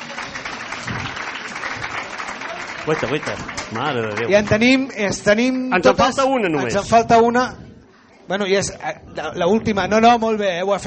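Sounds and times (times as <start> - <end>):
applause for a contestant: 0.0 - 4.8
speech: 2.8 - 7.6, 8.3 - 10.8.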